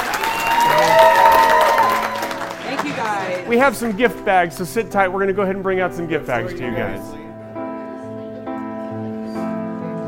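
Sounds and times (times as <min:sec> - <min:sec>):
applause from a dinner audience: 0:00.0 - 0:04.8
speech: 0:03.5 - 0:07.2.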